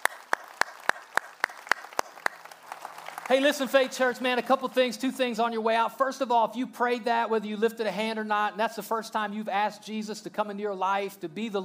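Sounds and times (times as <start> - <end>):
audience clapping: 0.0 - 5.0
speech: 3.3 - 11.6.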